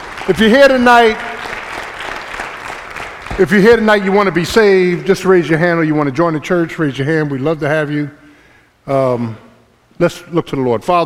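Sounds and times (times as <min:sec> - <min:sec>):
audience hand clapping: 0:00.0 - 0:05.2
speech: 0:00.2 - 0:01.3, 0:03.4 - 0:08.2, 0:08.8 - 0:09.4, 0:10.0 - 0:11.0.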